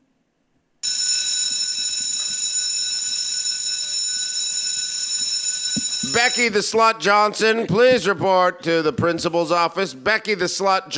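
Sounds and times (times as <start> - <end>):
electric school bell ringing: 0.8 - 6.6
speech: 6.1 - 10.9.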